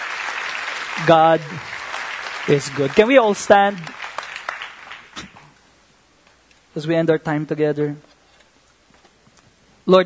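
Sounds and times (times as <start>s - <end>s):
crowd clapping: 0.0s - 5.6s
speech: 1.0s - 1.8s, 2.4s - 4.0s, 6.8s - 8.1s, 9.9s - 10.0s.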